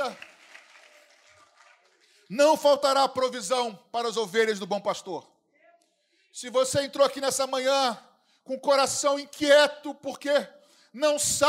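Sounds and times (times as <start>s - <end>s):
audience applauding: 0.0s - 2.2s
speech: 2.3s - 5.3s, 6.3s - 11.4s.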